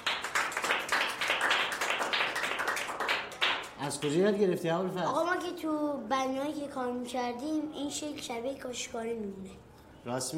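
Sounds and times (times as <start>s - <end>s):
classroom of pupils clapping for a classmate at the blackboard: 0.0s - 4.2s
speech: 3.8s - 10.3s.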